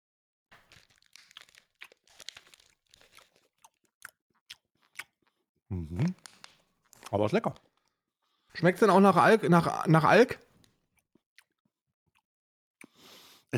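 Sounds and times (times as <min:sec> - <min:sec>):
light crinkles and taps: 0:00.6 - 0:03.4, 0:06.2 - 0:08.0
crunchy bite into a Piemont cherry liqueur chocolate: 0:00.6 - 0:07.6
speech: 0:05.7 - 0:06.3, 0:07.1 - 0:07.7, 0:08.6 - 0:10.5.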